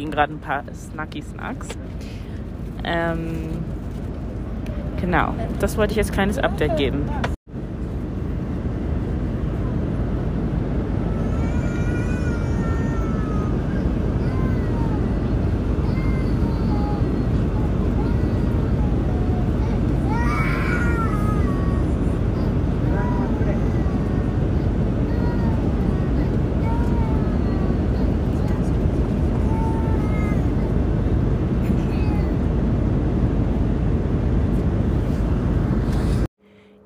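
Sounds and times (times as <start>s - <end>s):
speech: 0.0s - 2.2s, 2.8s - 3.8s, 4.7s - 7.4s
airplane cabin roar: 0.0s - 36.8s
exhausted child crying on airplane: 11.0s - 24.2s, 25.0s - 30.7s, 31.6s - 32.4s.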